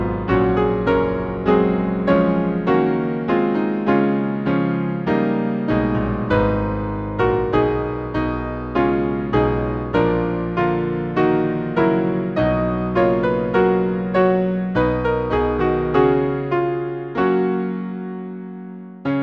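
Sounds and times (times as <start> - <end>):
hymn played on piano: 0.0 - 19.2.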